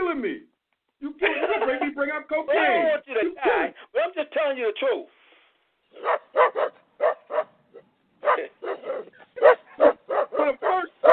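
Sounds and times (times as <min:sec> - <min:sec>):
laughter: 0:01.0 - 0:03.8
speech: 0:02.1 - 0:05.2
person barking like a dog: 0:05.9 - 0:11.1.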